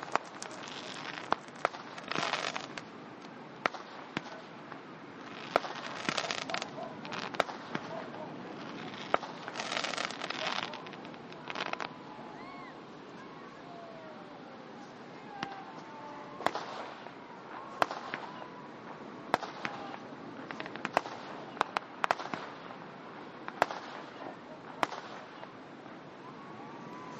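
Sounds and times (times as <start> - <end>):
fireworks on the beach: 0.0 - 2.9, 3.6 - 12.6, 15.3 - 22.8, 23.4 - 25.6.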